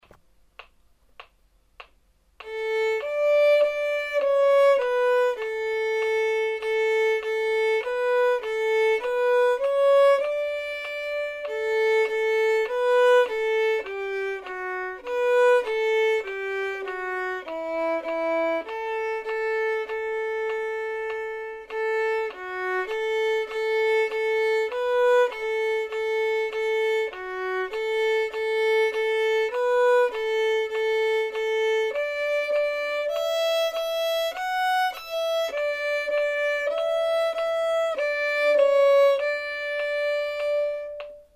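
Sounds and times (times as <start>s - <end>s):
violin practice: 0.0s - 41.3s.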